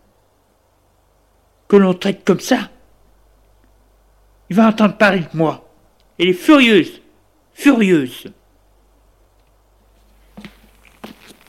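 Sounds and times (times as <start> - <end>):
faint hum: 0.0 - 11.4
speech: 1.7 - 2.8, 4.5 - 5.6, 6.2 - 7.0, 7.6 - 8.4
footsteps of a woman pacing in her apartment: 9.8 - 11.4.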